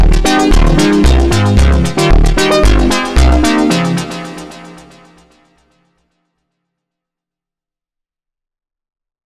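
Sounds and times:
slowed montagem music: 0:00.0 - 0:05.4.

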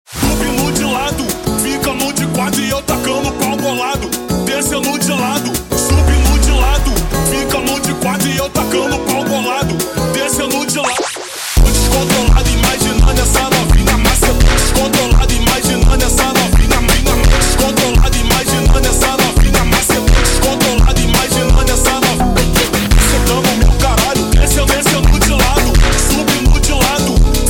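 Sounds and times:
slowed brega music: 0:00.4 - 0:27.4.

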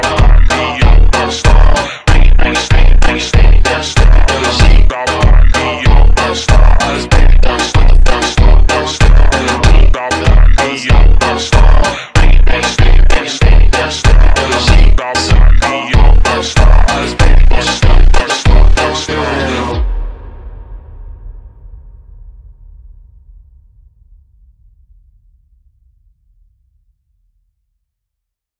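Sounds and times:
slowed funk music: 0:00.0 - 0:19.8.

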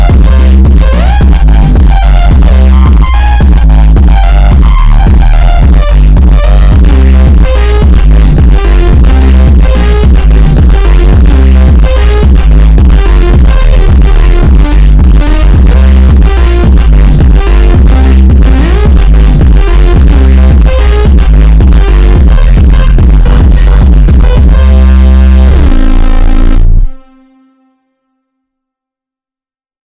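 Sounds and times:
slow superbass with reverb: 0:00.0 - 0:27.1.

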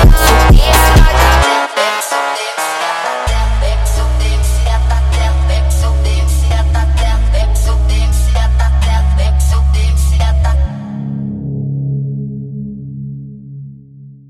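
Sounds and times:
sped up song: 0:00.0 - 0:11.2.

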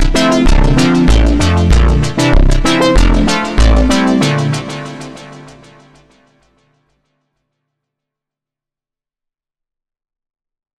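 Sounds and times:
slowed montagem funk music: 0:00.0 - 0:06.1.

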